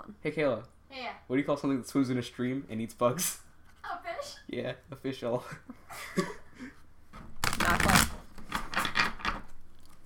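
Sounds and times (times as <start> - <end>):
speech: 0.2 - 6.4
playing cards being shuffled: 7.4 - 8.8.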